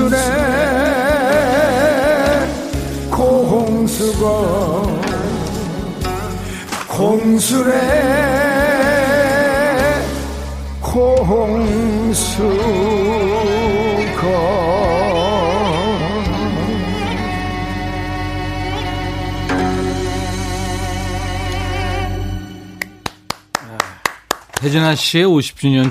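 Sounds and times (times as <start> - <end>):
Korean traditional bowed-string melody with heavy vibrato: 0.1 - 23.3
speech: 4.0 - 5.0, 7.0 - 8.7, 10.9 - 13.6, 24.6 - 25.8
sharp plucked string strikes: 19.4 - 23.3.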